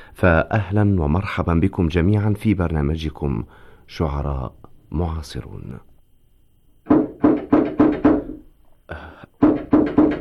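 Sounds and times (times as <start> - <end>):
speech: 0.2 - 5.9
knocking on a door: 6.8 - 8.4, 9.4 - 10.2.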